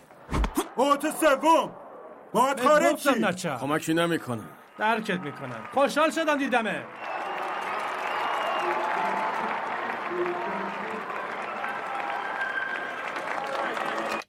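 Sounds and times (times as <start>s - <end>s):
speech: 0.8s - 7.1s
baseball crowd applauding and cheering as a player leaves the field: 4.2s - 14.2s.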